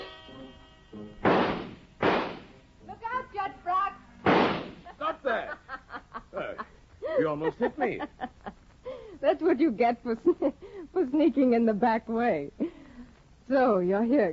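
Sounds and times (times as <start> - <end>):
pistol shots from General Gabler's pistols: 1.2 - 2.6, 4.2 - 4.9
laughter: 4.8 - 8.6
speech: 7.4 - 8.3, 9.5 - 12.6, 13.5 - 14.3.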